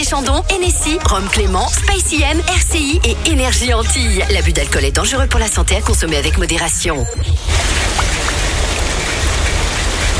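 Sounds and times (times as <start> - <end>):
speech: 0.1 - 8.4
heavy rain: 7.3 - 10.1.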